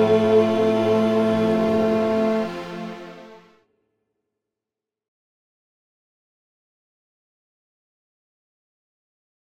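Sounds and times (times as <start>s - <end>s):
contralto voices singing: 0.0s - 3.4s.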